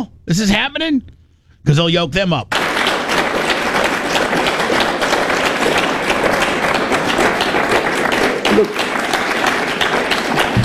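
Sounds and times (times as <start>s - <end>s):
speech: 0.0s - 2.6s, 8.6s - 8.8s
audience applause: 2.5s - 10.6s.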